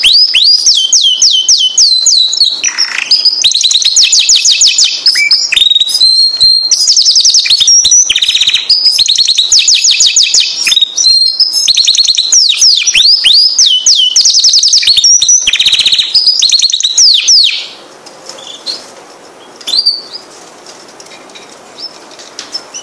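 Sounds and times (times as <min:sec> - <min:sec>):
canary singing: 0:00.0 - 0:22.8.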